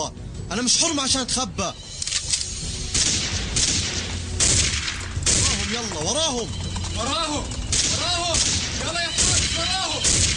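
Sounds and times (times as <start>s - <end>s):
speech: 0.0s - 1.9s, 5.7s - 10.3s
gunfire: 2.9s - 6.0s, 7.6s - 10.3s.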